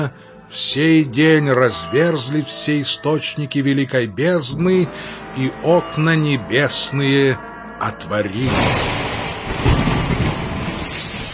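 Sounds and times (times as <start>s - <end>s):
speech: 0.0s - 9.4s
thunder rumbling: 8.4s - 11.3s
heavy rain downpour: 8.5s - 11.3s.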